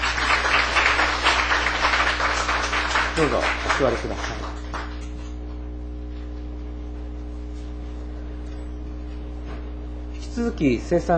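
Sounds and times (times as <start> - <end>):
church congregation applauding its Sunday school teachers: 0.0 - 5.3
speech: 3.2 - 4.4, 10.4 - 11.1.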